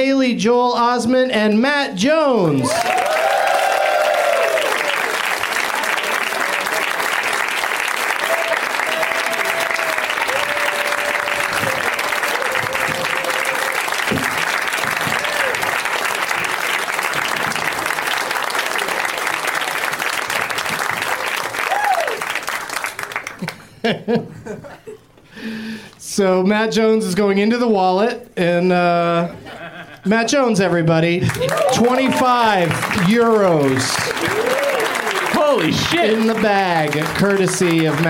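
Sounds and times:
speech: 0.0 - 3.2, 23.9 - 24.7, 26.2 - 29.4, 30.0 - 34.0, 35.6 - 38.0
audience applause welcoming four guests: 2.7 - 23.7, 31.2 - 38.0
laughter: 23.4 - 25.1, 29.2 - 30.1.

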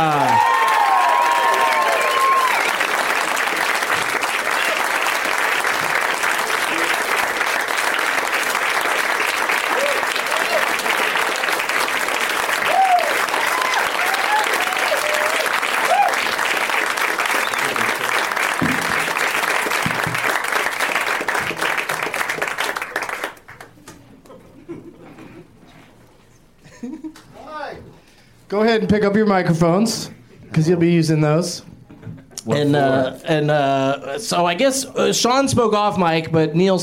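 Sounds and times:
studio audience cheers: 0.0 - 5.2, 9.2 - 20.2
studio audience applause welcoming show guests: 0.0 - 23.8
speech: 28.8 - 31.7, 32.5 - 36.8.

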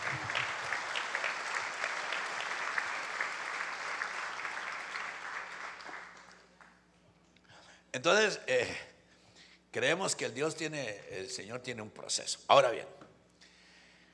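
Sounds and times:
audience applause: 0.0 - 6.8
speech: 7.9 - 8.9, 9.7 - 13.0.

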